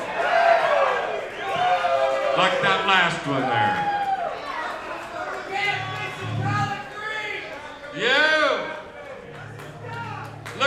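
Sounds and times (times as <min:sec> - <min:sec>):
Georgia crowd cheering: 0:00.0 - 0:10.6
speech: 0:02.4 - 0:04.0.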